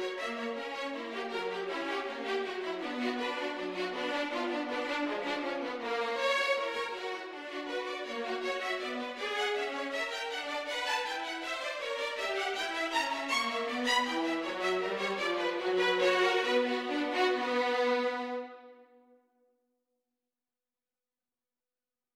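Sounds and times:
violin and viola duet: 0:00.0 - 0:18.7.

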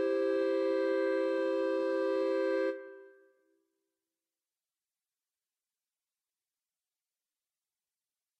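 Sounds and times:
clarinet trio playing: 0:00.0 - 0:03.0.

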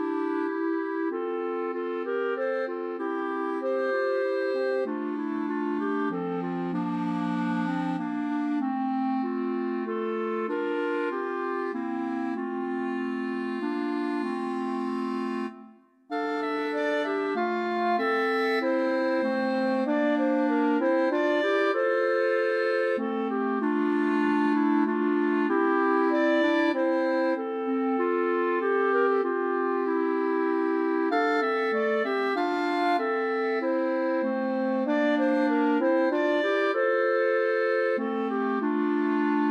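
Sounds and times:
clarinet trio playing: 0:00.0 - 0:39.4.

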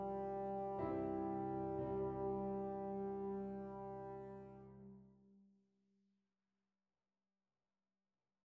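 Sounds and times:
trombone: 0:00.0 - 0:04.9.

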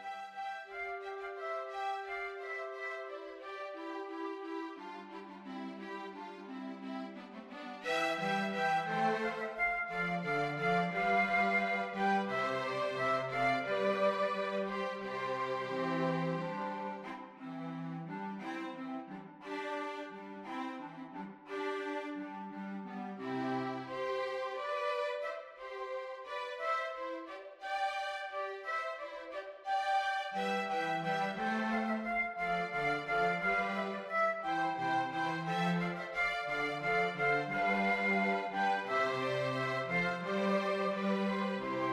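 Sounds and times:
hornpipe tune for flexible instrumentation: 0:00.0 - 0:41.9.

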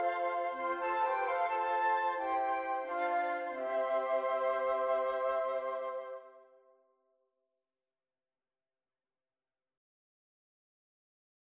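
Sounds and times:
jazz flute quartet: 0:00.0 - 0:06.3.

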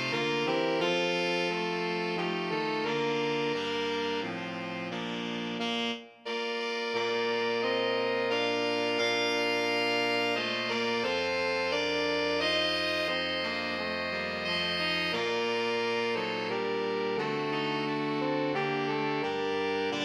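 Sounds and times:
saxophone quintet playing: 0:00.0 - 0:20.0.

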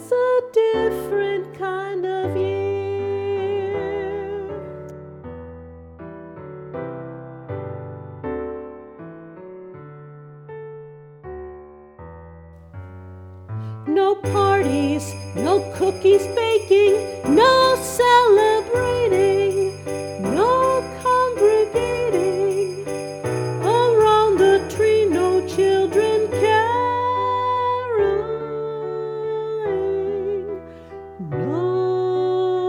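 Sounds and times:
solo voice singing: 0:00.0 - 0:04.8, 0:13.9 - 0:32.6
piano chords: 0:00.0 - 0:32.6
sleigh bells: 0:14.2 - 0:28.6.

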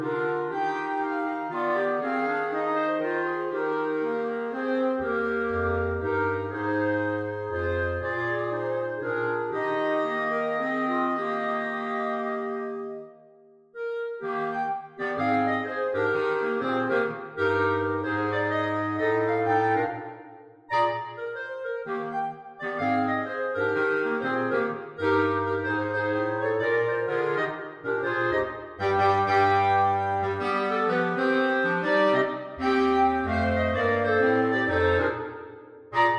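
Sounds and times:
clarinet playing a Christmas carol: 0:00.0 - 0:36.1.

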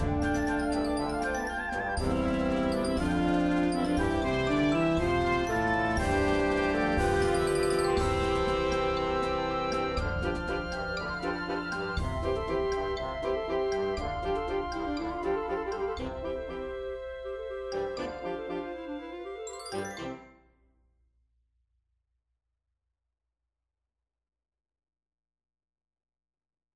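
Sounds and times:
band playing: 0:00.0 - 0:20.2.

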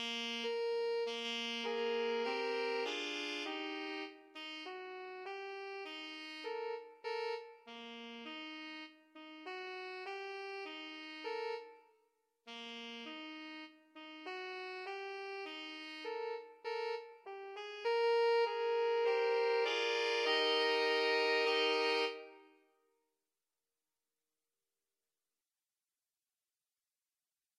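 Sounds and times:
saxophone trio playing: 0:00.0 - 0:11.8, 0:12.5 - 0:22.6.

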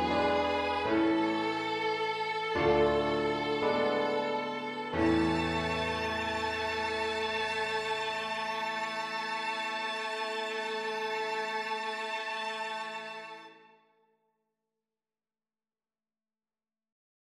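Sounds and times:
two violins: 0:00.0 - 0:13.7.

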